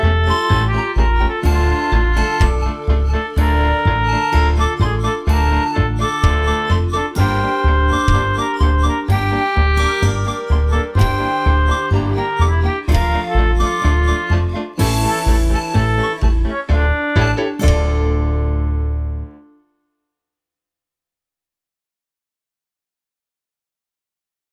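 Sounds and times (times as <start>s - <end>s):
oboe: 0.0s - 19.3s.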